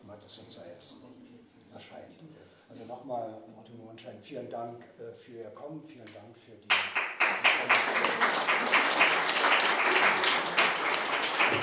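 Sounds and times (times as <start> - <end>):
speech: 0.1 - 9.7
audience applause: 6.7 - 11.6.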